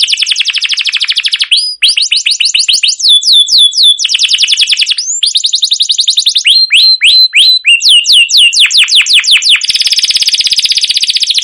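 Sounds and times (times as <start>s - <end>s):
canary song: 0.0s - 11.4s.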